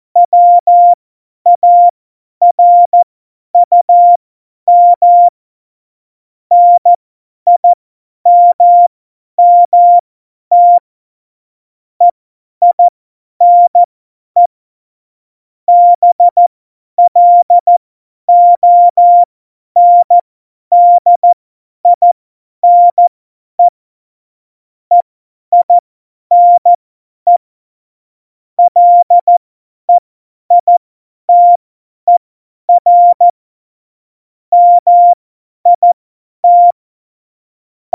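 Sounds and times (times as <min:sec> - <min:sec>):
CW Morse code at tempo 70: 0:00.2 - 0:01.0, 0:01.6 - 0:03.0, 0:03.6 - 0:05.3, 0:06.5 - 0:06.9, 0:07.5 - 0:07.7, 0:08.3 - 0:10.8, 0:12.6 - 0:14.5, 0:15.7 - 0:16.4, 0:17.0 - 0:23.7, 0:24.9 - 0:27.4, 0:28.6 - 0:29.4, 0:30.5 - 0:33.4, 0:34.5 - 0:36.8.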